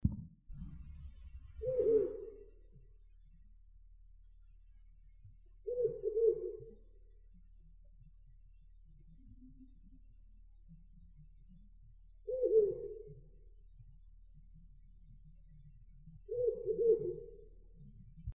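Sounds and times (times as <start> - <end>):
owl: 0.6 - 2.7, 5.6 - 7.8, 12.2 - 13.5, 16.1 - 17.7.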